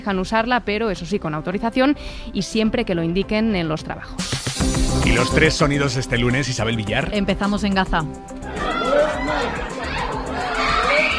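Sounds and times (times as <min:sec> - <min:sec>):
speech: 0:00.0 - 0:09.8
family screaming in grief in Gaza: 0:05.0 - 0:05.6, 0:08.4 - 0:11.1.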